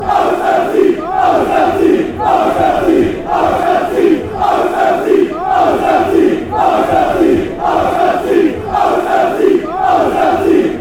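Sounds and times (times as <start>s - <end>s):
away fans chanting after victory: 0.0s - 10.7s.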